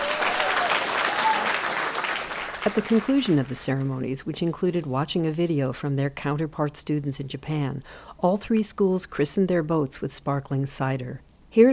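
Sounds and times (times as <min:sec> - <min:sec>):
schoolchildren clapping at a ceremony launching mini boats: 0:00.0 - 0:03.6
speech: 0:02.6 - 0:11.7.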